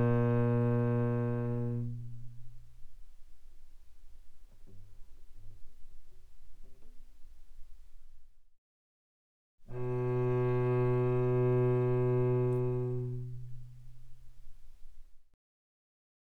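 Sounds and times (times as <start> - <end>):
cello arco mezzo-forte on C string: 0.0 - 7.2, 9.6 - 15.1.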